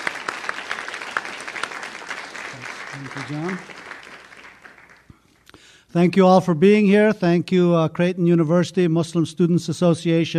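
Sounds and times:
applause welcoming a guest speaker at a university lecture: 0.0s - 5.1s
speech: 3.0s - 3.8s, 5.9s - 10.3s.

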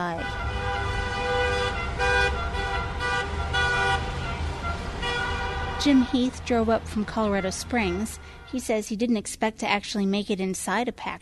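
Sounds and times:
honking cars circling the Capitol in protest: 0.1s - 8.7s
speech: 5.8s - 11.1s.

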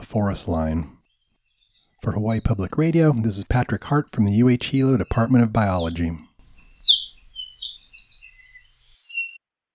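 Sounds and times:
skylark-like song: 0.0s - 9.4s
speech: 0.1s - 1.0s, 2.0s - 6.3s.

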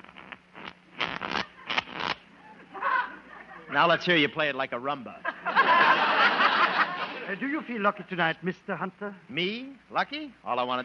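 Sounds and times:
playing cards being shuffled: 0.0s - 2.2s
laughter: 2.4s - 4.4s, 5.2s - 7.7s
speech: 3.7s - 5.3s, 7.3s - 10.8s.

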